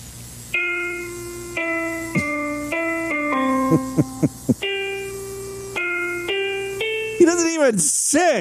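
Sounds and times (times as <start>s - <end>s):
patriotic song played one-fingered on electronic keyboard: 0.6s - 7.6s
speech: 3.7s - 4.6s, 7.2s - 8.3s.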